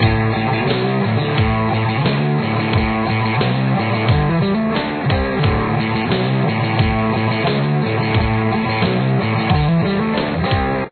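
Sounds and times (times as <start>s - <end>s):
outro music: 0.0s - 10.9s.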